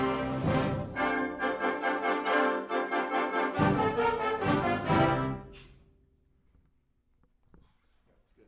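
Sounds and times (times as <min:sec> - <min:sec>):
basse danse music: 0:00.0 - 0:05.7.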